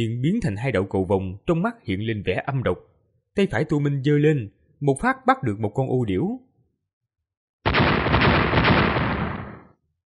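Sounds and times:
speech: 0.0s - 6.5s
three consecutive explosions: 7.7s - 9.7s.

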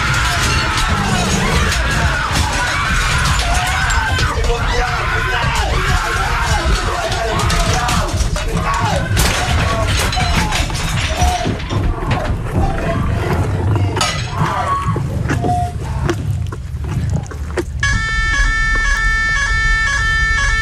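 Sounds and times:
loud chaotic roaring din: 0.0s - 20.5s
steady electronic alarm siren: 17.8s - 20.5s.

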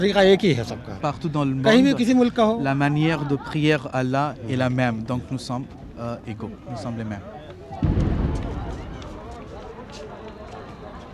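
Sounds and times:
speech: 0.0s - 8.0s
faint murmur of voices: 0.0s - 11.1s
deep celebratory explosion marking the end of Ramadan in India: 7.8s - 9.0s.

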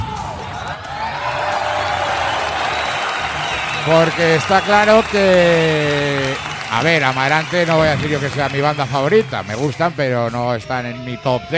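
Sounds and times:
crowd cheering and whooping: 0.0s - 10.3s
applause: 1.0s - 10.2s
speech: 3.9s - 11.5s.

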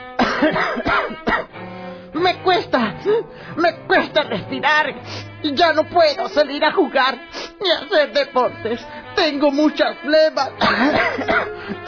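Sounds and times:
person coughing: 0.2s - 1.5s, 10.5s - 11.8s
speech: 0.4s - 1.6s, 2.2s - 11.8s.

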